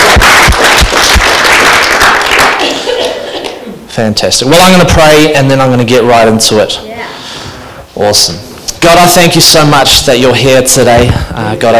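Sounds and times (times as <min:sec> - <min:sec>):
audience clapping: 0:00.0 - 0:03.6
speech: 0:04.0 - 0:06.9, 0:08.0 - 0:11.7.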